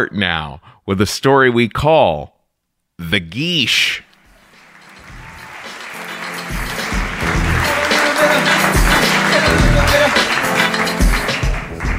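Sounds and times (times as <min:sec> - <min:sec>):
speech: 0:00.0 - 0:02.4, 0:03.0 - 0:04.1
audience clapping: 0:04.2 - 0:11.9.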